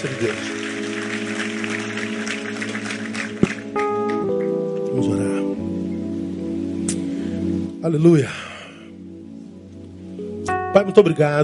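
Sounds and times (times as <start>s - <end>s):
speech: 0.0s - 0.6s, 7.8s - 8.4s, 10.8s - 11.4s
audience applauding: 0.0s - 4.6s
sustained keyboard or organ chord: 0.0s - 11.4s.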